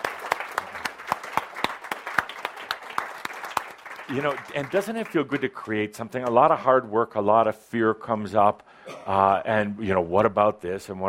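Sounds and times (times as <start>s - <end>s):
audience applause: 0.0s - 5.6s
speech: 4.1s - 11.0s.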